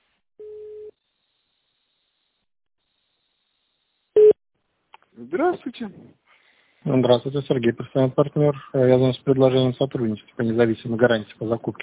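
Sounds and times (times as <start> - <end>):
telephone beep after voicemail greeting: 4.2 - 4.4
speech: 5.3 - 6.2, 6.8 - 11.8.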